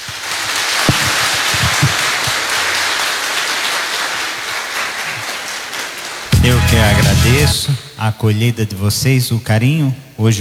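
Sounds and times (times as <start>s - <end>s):
audience applauding: 0.0s - 7.8s
speech: 6.4s - 10.4s.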